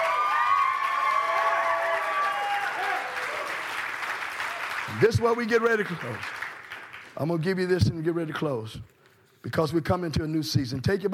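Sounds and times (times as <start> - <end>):
audience clapping and cheering: 0.0 - 7.6
speech: 4.9 - 6.4, 7.2 - 11.1.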